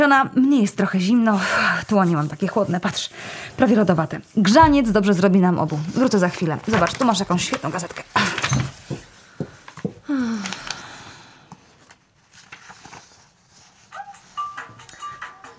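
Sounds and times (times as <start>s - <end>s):
speech: 0.0s - 9.0s
telephone ringing: 14.4s - 15.5s.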